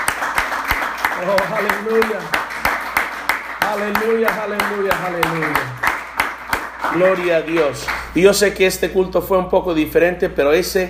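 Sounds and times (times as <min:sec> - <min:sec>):
audience clapping rhythmically: 0:00.0 - 0:08.4
speech: 0:01.2 - 0:02.4, 0:03.7 - 0:05.8, 0:06.9 - 0:10.8.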